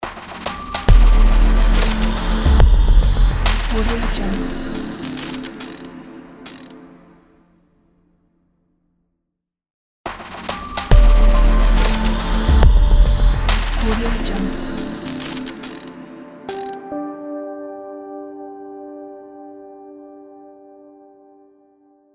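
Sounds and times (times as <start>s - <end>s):
abstract glitch logo sound: 0.7s - 5.9s, 10.9s - 16.8s.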